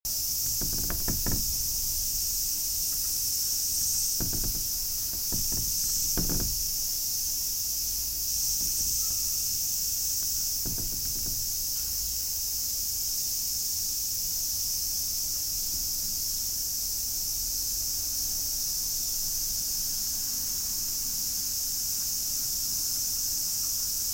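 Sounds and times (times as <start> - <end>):
cicada drone: 0.1 - 24.1
wooden knocks and rattles: 0.4 - 7.0, 8.4 - 9.5, 10.2 - 11.9.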